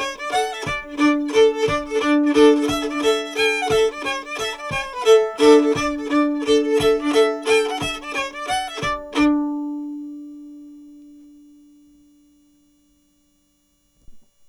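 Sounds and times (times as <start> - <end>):
mazurka: 0.0 - 9.6.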